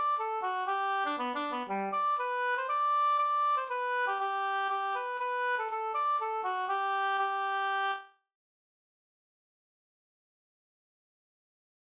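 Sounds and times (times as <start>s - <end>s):
polska dance tune: 0.0s - 7.8s.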